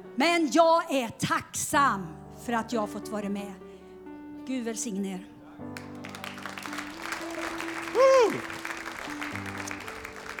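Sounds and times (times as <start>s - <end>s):
speech: 0.2s - 3.6s, 4.5s - 5.9s, 8.0s - 8.6s
audience applause: 5.8s - 10.3s.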